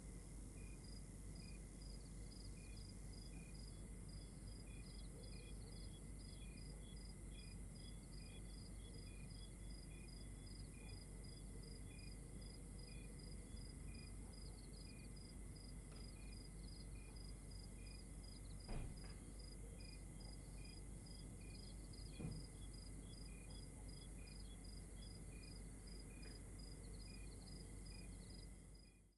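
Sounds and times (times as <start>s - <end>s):
continuous whining tone: 0.0s - 29.1s
chorus of crickets chirping: 0.1s - 29.1s.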